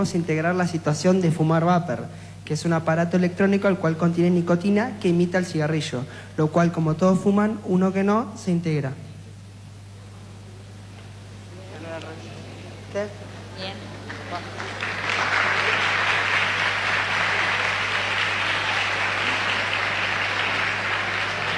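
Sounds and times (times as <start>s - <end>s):
speech: 0.0s - 9.1s
audience applause: 14.0s - 21.5s.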